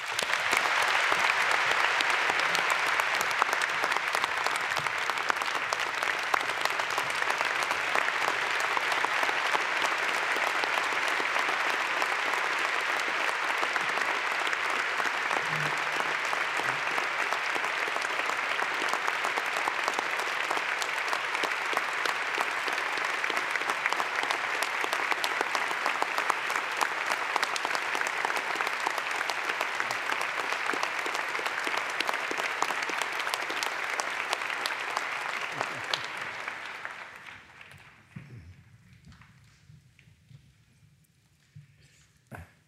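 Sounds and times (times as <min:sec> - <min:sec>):
audience applause: 0:00.0 - 0:39.2.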